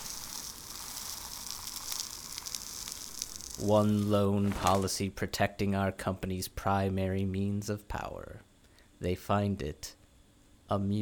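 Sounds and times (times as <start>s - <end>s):
ants' guts popping: 0.0s - 3.7s
ants burning: 0.0s - 5.0s
speech: 3.6s - 10.0s, 10.7s - 10.9s.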